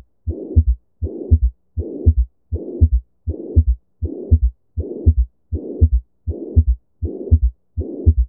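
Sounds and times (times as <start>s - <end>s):
S3 heart sound at the apex in left lateral decubitus via stethoscope bell: 0.0s - 8.2s.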